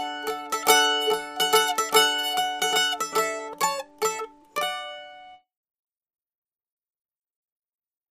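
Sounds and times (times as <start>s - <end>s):
mandolin: 0.0s - 5.4s.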